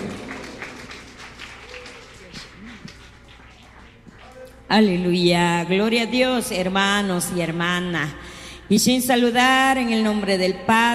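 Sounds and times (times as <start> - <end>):
audience applause: 0.0 - 4.5
speech: 4.7 - 10.9.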